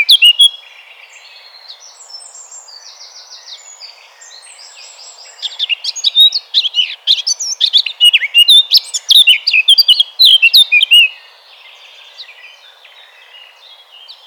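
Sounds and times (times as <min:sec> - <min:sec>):
blackcap singing: 0:00.0 - 0:14.2.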